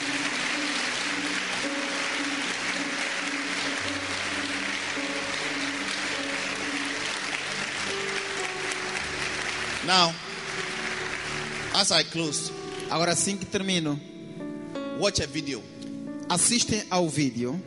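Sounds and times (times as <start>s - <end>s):
audience applause: 0.0s - 12.2s
sustained low musical tones: 0.0s - 17.6s
speech: 9.9s - 10.2s, 11.8s - 14.1s, 15.0s - 15.7s, 16.3s - 17.6s.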